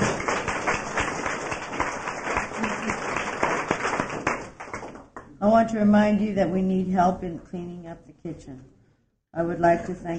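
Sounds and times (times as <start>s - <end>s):
round of applause: 0.0s - 5.2s
speech: 5.4s - 10.1s.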